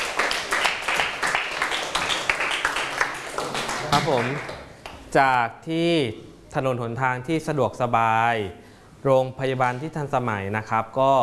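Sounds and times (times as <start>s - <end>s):
students clapping for classmates: 0.0s - 5.0s
speech: 3.9s - 4.5s, 5.1s - 11.2s.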